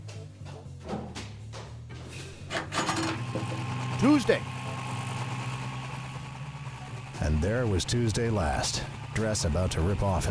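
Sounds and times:
chopper motorcycle engine idling: 3.2 - 10.3
speech: 4.0 - 4.6, 7.4 - 10.3.

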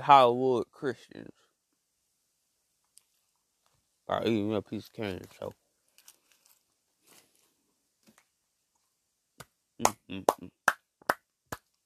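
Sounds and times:
speech: 0.0 - 1.4, 4.1 - 5.6, 9.8 - 10.6
faint soft noises: 0.0 - 10.5
sharp dry hand claps: 9.4 - 11.8.

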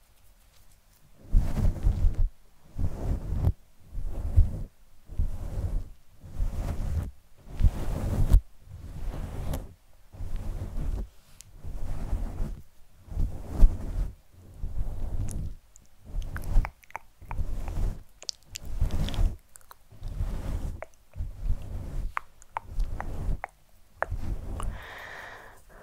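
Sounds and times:
brushing strokes on a fluffy microphone cover: 0.0 - 16.7, 17.3 - 24.9
small scratches and crackles: 0.0 - 25.0.

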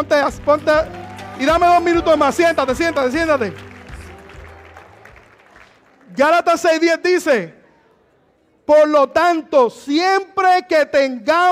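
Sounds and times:
speech: 0.0 - 3.7, 6.2 - 7.6, 8.7 - 11.5
audience applauding: 0.1 - 6.8.

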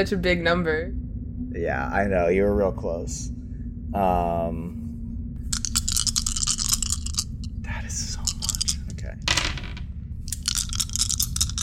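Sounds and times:
speech: 0.0 - 4.8, 7.7 - 8.2
low steady rumble: 0.0 - 11.6
dice rolling on a table: 5.4 - 11.6.

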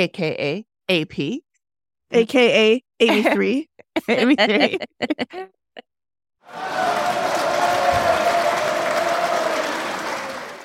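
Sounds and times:
speech: 0.0 - 1.4, 2.1 - 5.6, 6.5 - 7.7
crowd cheering and applause effect: 6.4 - 10.6.

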